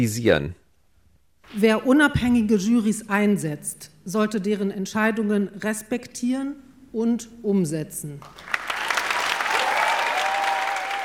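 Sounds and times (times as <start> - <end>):
speech: 0.0 - 0.6, 1.5 - 8.5
audience applause: 8.2 - 11.0.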